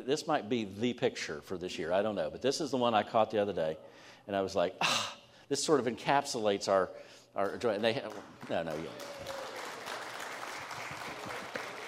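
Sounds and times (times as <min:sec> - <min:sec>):
speech: 0:00.0 - 0:09.4
audience applauding: 0:08.0 - 0:11.8.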